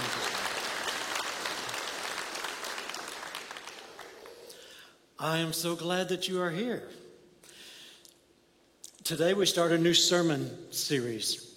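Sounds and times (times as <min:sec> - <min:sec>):
congregation applauding to welcome a speaker at a morning church service: 0:00.0 - 0:04.8
speech: 0:05.2 - 0:07.0, 0:09.1 - 0:11.5.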